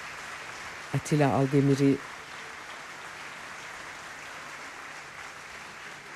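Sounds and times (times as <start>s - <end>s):
audience and performers applauding in a concert hall: 0.0s - 6.1s
speech: 0.9s - 2.1s.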